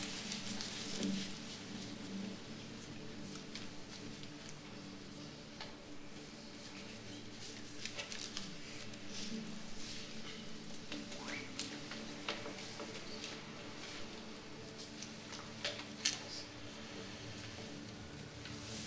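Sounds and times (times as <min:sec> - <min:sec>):
room tone hum: 0:00.0 - 0:18.8.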